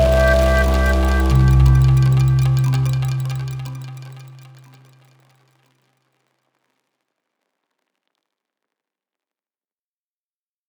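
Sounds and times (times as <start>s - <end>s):
instrument multiphonics: 0.0s - 5.3s.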